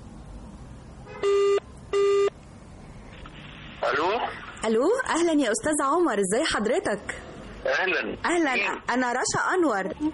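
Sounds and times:
telephone ringing tone on an outgoing call to a radio guest: 0:01.2 - 0:02.3
speech: 0:04.7 - 0:10.1.

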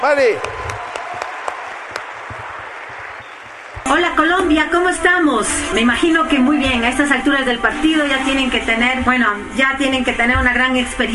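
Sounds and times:
speech: 0:00.0 - 0:00.6, 0:03.9 - 0:11.1
audience applause: 0:00.0 - 0:04.1.

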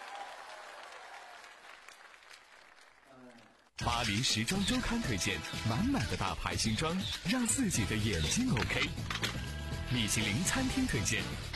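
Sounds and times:
audience applause: 0:00.0 - 0:03.5
speech: 0:03.9 - 0:09.3, 0:09.9 - 0:11.5.

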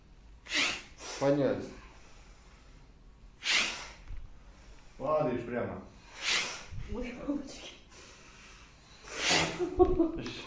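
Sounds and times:
forceful exhalations through both nostrils in a kriya breathing exercise: 0:00.4 - 0:02.4, 0:03.4 - 0:04.8, 0:06.0 - 0:06.9, 0:08.0 - 0:09.6
speech: 0:01.2 - 0:01.8, 0:05.1 - 0:05.9, 0:06.9 - 0:07.8, 0:09.6 - 0:10.4.

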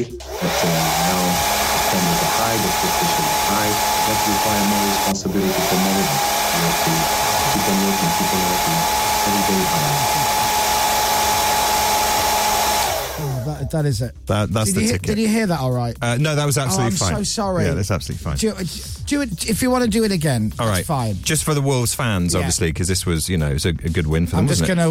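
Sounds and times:
speech: 0:00.0 - 0:10.2, 0:13.7 - 0:24.8
hair dryer running: 0:00.0 - 0:13.6.

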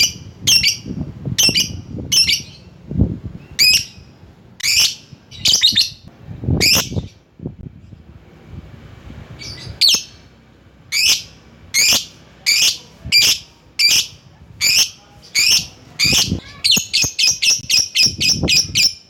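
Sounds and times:
lovebird calling: 0:00.0 - 0:02.8, 0:03.4 - 0:07.2, 0:09.3 - 0:19.0.

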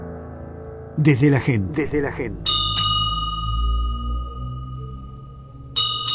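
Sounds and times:
speech: 0:00.9 - 0:02.5
bell ringing: 0:02.3 - 0:06.1.

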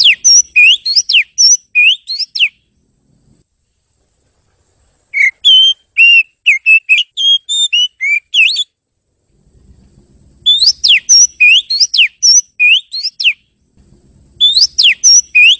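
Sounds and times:
bird whistling bright pure notes: 0:00.0 - 0:02.6, 0:05.1 - 0:08.8, 0:10.4 - 0:13.4, 0:14.4 - 0:15.5.

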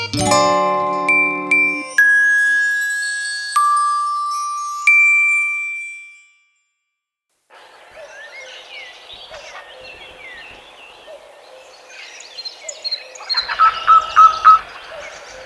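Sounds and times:
ringing chime tones: 0:00.2 - 0:06.5
wood warbler singing: 0:07.6 - 0:15.4.

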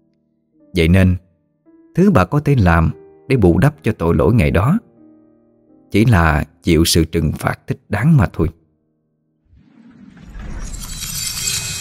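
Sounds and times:
speech: 0:00.8 - 0:01.2, 0:02.0 - 0:04.9, 0:05.9 - 0:08.6
glass shattering: 0:10.1 - 0:11.8.

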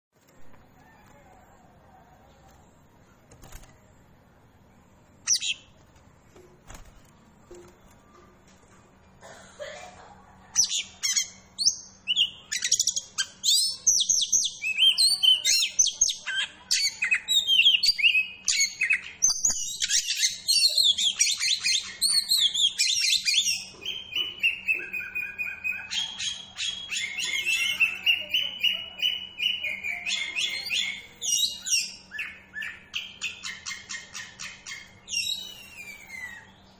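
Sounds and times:
Oriental magpie-robin song: 0:05.2 - 0:05.7, 0:10.6 - 0:36.7.

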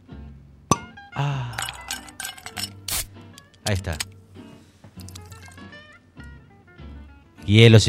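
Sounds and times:
bottle and wine glasses clinking as a drink is served: 0:00.7 - 0:02.8
speech: 0:01.2 - 0:01.6, 0:03.7 - 0:04.1, 0:07.5 - 0:07.8
handling noises: 0:01.6 - 0:04.2, 0:04.8 - 0:05.6.

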